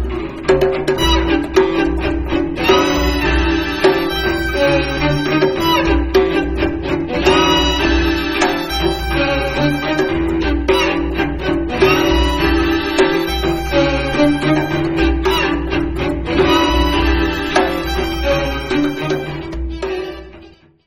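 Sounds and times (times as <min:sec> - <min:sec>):
string quartet: 0:00.1 - 0:20.7.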